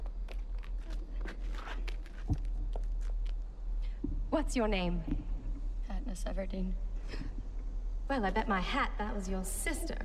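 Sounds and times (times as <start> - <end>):
footsteps climbing stone steps to a stage: 0.0 - 4.3
low steady hum: 0.0 - 10.0
speech: 4.4 - 5.2, 6.1 - 7.4, 8.1 - 10.0.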